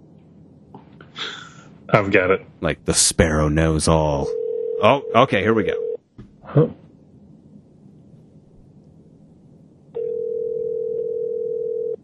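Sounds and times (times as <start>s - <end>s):
speech: 1.9s - 5.9s, 6.5s - 6.8s
outgoing phone call ringing tone: 4.3s - 6.0s, 10.0s - 12.0s.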